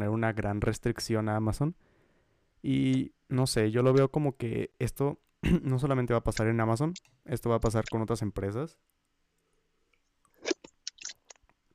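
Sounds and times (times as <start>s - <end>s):
speech: 0.0s - 1.9s, 2.6s - 8.9s
mouth clicks: 6.3s - 8.1s, 10.3s - 11.4s
person drinking water: 10.3s - 11.5s.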